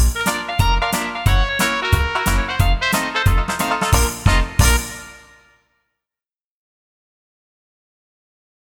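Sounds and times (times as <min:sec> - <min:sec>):
family karaoke song: 0:00.0 - 0:05.3.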